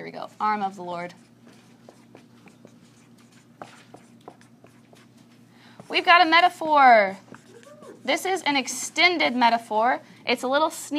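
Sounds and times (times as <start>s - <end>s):
low steady hum: 0.0s - 10.9s
speech: 0.1s - 1.3s, 5.9s - 7.4s, 8.0s - 10.9s
writing on a board: 0.3s - 8.4s.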